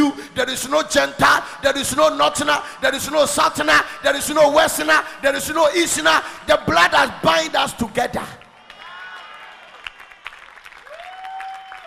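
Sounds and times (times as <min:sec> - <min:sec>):
speech: 0:00.1 - 0:08.4
audience clapping: 0:08.3 - 0:11.8.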